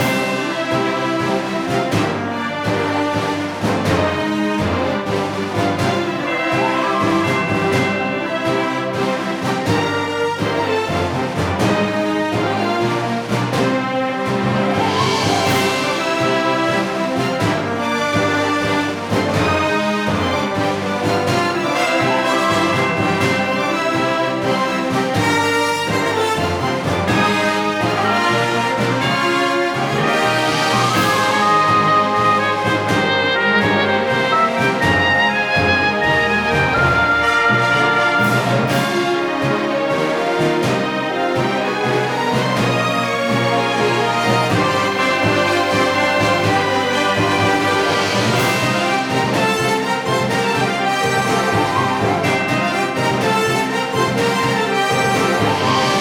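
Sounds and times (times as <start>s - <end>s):
looping overworld game music: 0.0s - 55.9s.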